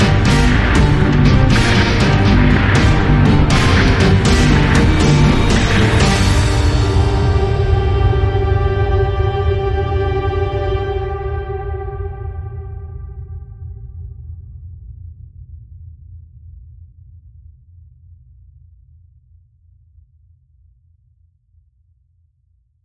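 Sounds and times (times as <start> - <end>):
gothic action music stinger: 0.0 - 13.8.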